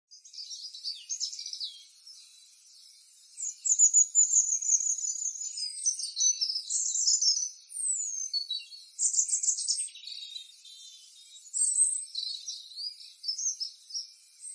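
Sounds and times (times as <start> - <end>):
birds chirping and twittering: 0.1 - 14.5.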